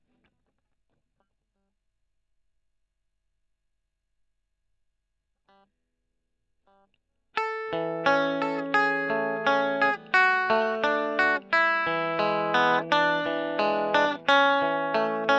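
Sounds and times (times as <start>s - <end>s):
electric guitar: 7.4s - 15.3s.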